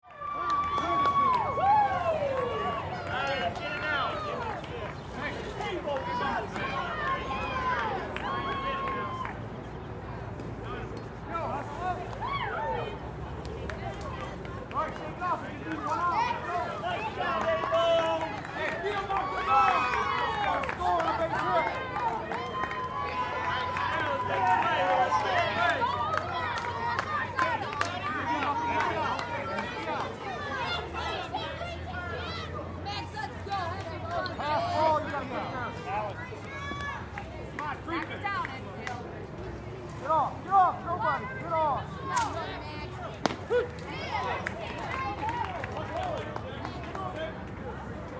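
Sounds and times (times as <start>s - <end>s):
Little League baseball game crowd cheering: 0.0s - 9.8s, 11.4s - 39.0s, 40.1s - 47.9s.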